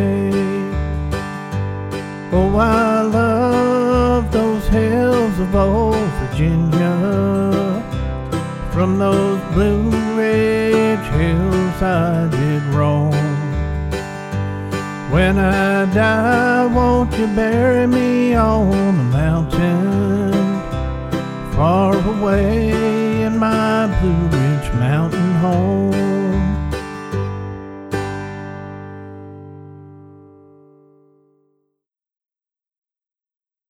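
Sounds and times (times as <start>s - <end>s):
person singing: 0.0s - 1.0s, 2.3s - 13.8s, 14.7s - 20.7s, 21.4s - 26.9s
backing track music in key of G at 75 bpm: 0.0s - 31.2s.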